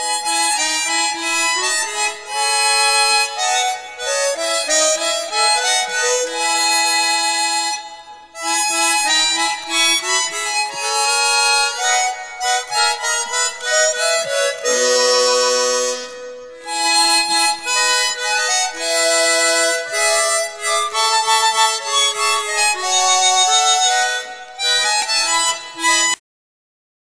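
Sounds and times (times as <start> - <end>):
chromatic harmonica: 0.0 - 26.2.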